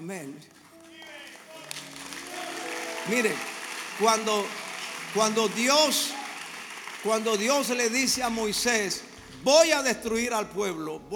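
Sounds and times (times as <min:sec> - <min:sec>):
speech: 0:00.1 - 0:00.7, 0:03.1 - 0:04.6, 0:05.2 - 0:06.2, 0:07.0 - 0:11.1
crowd applause: 0:00.8 - 0:09.2.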